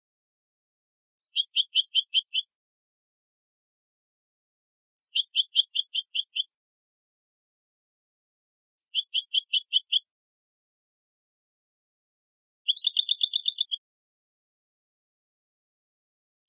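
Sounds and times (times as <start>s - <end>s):
European goldfinch Carduelis carduelis buzzy rattling phrases: 1.2s - 2.6s, 5.0s - 6.6s, 8.8s - 10.1s, 12.7s - 13.8s.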